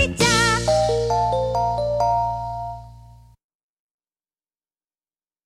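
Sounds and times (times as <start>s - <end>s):
commercial jingle: 0.2s - 3.4s.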